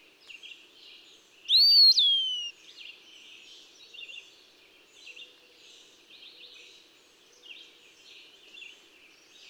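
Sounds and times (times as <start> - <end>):
Eastern Wood-pewee calling: 1.5 - 2.5.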